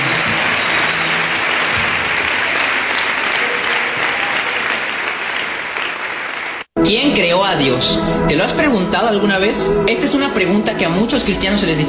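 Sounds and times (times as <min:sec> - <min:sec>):
loud applause: 0:00.0 - 0:06.7
speech: 0:07.5 - 0:11.8.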